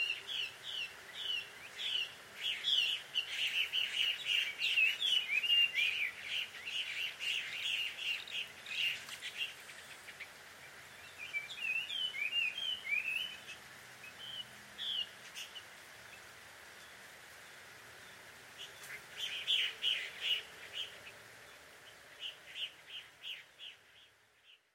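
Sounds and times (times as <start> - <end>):
birds chirping and warbling: 0.0 - 24.7.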